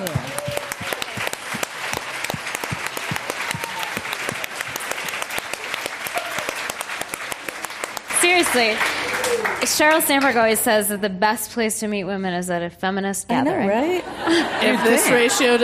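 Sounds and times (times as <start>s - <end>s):
audience applause: 0.0s - 10.3s
speech: 8.5s - 15.6s
laughter: 14.0s - 15.6s.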